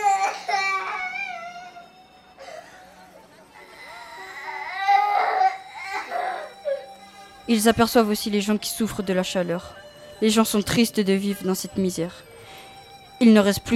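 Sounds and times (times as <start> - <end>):
children crying in a polluted abandoned industrial neighborhood: 0.0 - 7.9
speech: 7.5 - 12.3, 13.2 - 13.7.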